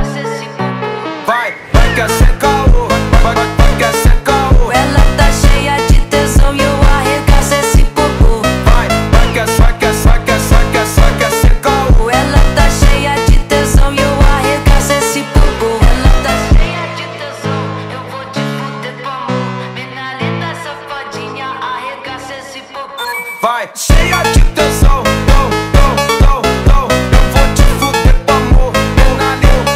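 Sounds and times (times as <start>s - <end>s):
funk music: 0.0s - 16.7s, 23.0s - 29.7s.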